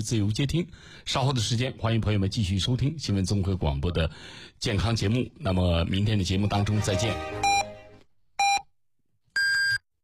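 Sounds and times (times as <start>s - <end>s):
speech: 0.0s - 7.6s
Chinese news radio hourly time signal beeps: 7.4s - 7.7s.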